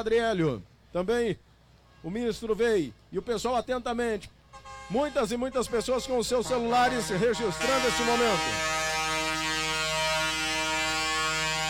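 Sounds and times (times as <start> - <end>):
speech: 0.0 - 8.8
truck horn honking: 4.5 - 11.6.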